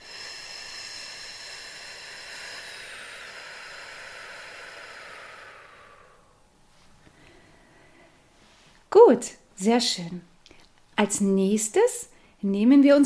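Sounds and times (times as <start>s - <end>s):
slow exhale: 0.0s - 8.9s
speech: 9.1s - 10.3s, 11.0s - 13.0s.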